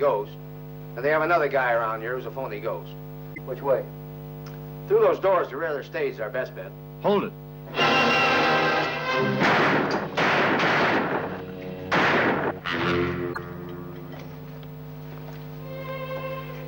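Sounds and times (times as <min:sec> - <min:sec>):
speech: 0:00.0 - 0:04.0, 0:04.9 - 0:08.2
dramatic music bed: 0:07.7 - 0:14.2
gunshots: 0:09.2 - 0:13.1.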